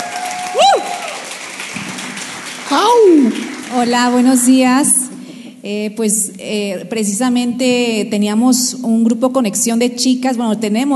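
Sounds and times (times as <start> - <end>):
audience applause: 0.0 - 5.4
speech: 2.7 - 5.0, 5.6 - 10.9.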